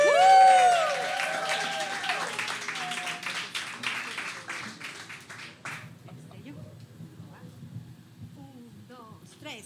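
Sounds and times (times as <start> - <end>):
audience applause after live song: 0.0 - 6.2.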